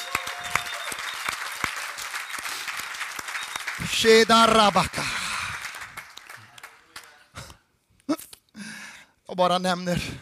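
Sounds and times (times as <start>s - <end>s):
audience applause in a church service: 0.0s - 7.2s
speech: 3.8s - 5.1s, 9.4s - 10.2s.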